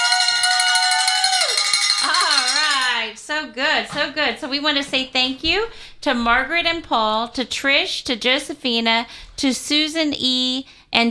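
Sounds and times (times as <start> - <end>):
hand bell being rung: 0.0 - 3.0
speech: 3.2 - 11.0.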